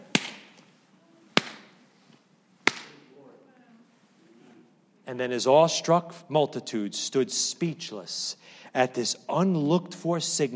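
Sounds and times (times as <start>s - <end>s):
hands clapping: 0.0s - 0.6s, 2.7s - 3.0s
speech: 5.1s - 10.5s.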